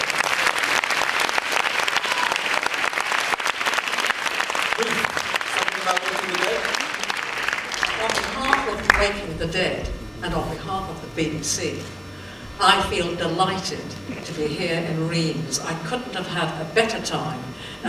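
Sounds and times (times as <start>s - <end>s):
audience applause: 0.0s - 9.8s
speech: 9.4s - 12.0s, 12.6s - 17.8s.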